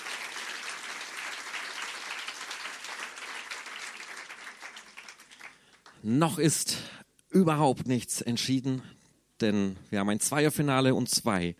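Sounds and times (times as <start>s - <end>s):
audience applause: 0.0s - 6.0s
speech: 6.0s - 11.5s.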